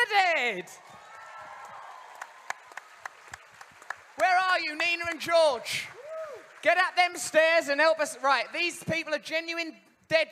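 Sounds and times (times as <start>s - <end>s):
speech: 0.1s - 0.9s, 4.2s - 6.0s, 6.6s - 10.3s
audience round of applause: 0.8s - 8.7s.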